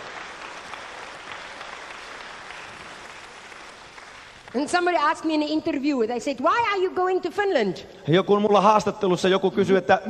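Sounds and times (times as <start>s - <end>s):
audience clapping: 0.0s - 5.2s
speech: 4.6s - 10.0s.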